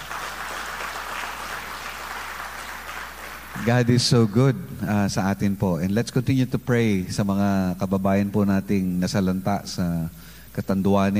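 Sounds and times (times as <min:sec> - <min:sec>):
church congregation applauding in praise of God: 0:00.0 - 0:04.5
speech: 0:03.6 - 0:11.1.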